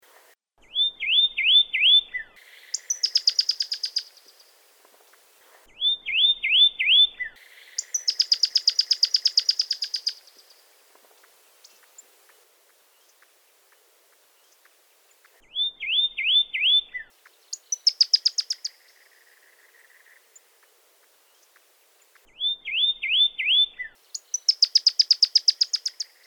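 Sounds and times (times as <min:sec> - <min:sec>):
Pyrrhuloxia singing slurred whistles and sharp notes: 0:00.6 - 0:04.5, 0:05.8 - 0:10.6, 0:15.4 - 0:20.2, 0:22.3 - 0:26.2.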